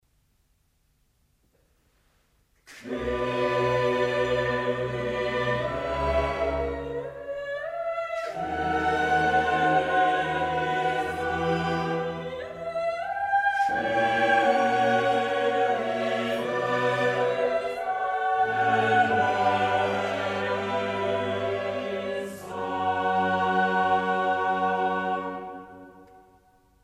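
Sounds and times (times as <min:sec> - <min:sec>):
sacred mass music: 0:02.8 - 0:26.8.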